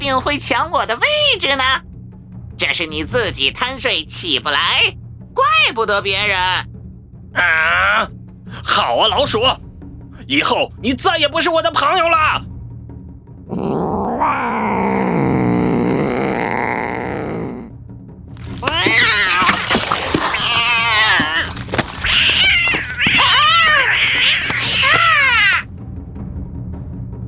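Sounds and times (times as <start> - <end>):
speech: 0.0 - 1.9, 2.6 - 6.7, 7.3 - 9.6, 10.3 - 12.5
angry cat yowling: 13.6 - 17.7, 18.4 - 25.7.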